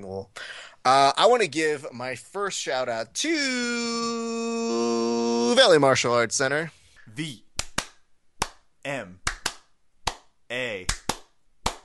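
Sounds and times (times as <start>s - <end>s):
speech: 0.0s - 4.8s, 5.6s - 7.4s, 8.8s - 9.2s
person humming or chanting along: 3.6s - 5.6s
hand claps in a syncopated rhythm: 7.6s - 11.8s.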